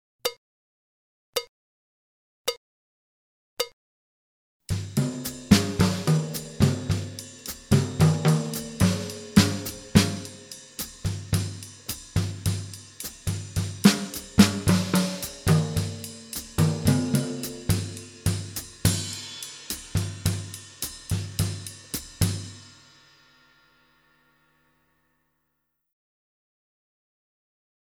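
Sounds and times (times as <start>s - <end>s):
melodic variations on a drum kit: 4.7s - 23.6s.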